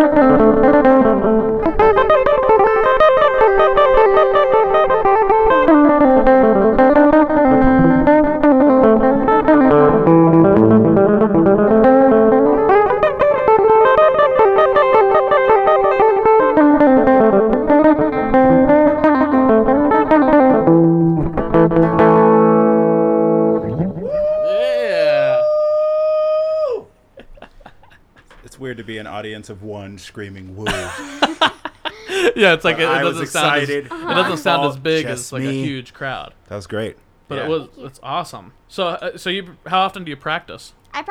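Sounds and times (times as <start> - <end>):
guitar riffs: 0.0 - 29.8, 30.6 - 41.0
laughter: 23.7 - 29.1, 30.5 - 35.8
speech: 29.4 - 31.2, 32.3 - 41.0.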